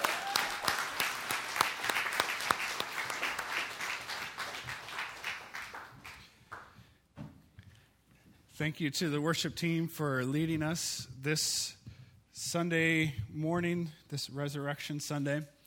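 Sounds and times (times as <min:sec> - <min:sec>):
audience clapping: 0:00.0 - 0:06.8
speech: 0:08.6 - 0:11.8, 0:12.4 - 0:15.6.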